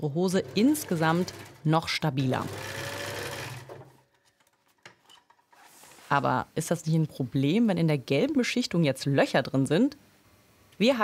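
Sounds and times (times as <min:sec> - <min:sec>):
speech: 0:00.0 - 0:03.0, 0:06.1 - 0:10.1, 0:10.8 - 0:11.0
sewing machine stitching a second seam on yellow-coated trousers: 0:00.3 - 0:04.0.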